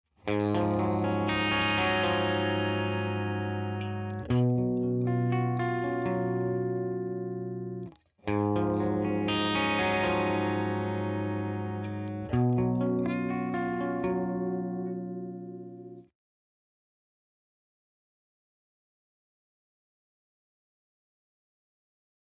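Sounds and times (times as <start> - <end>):
clean guitar riff: 0.3 - 16.1.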